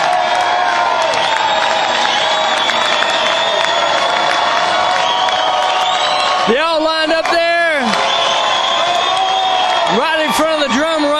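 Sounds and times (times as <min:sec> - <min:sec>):
big concert crowd cheering: 0:00.0 - 0:11.1
concert crowd whistles: 0:01.1 - 0:06.5, 0:07.9 - 0:10.0.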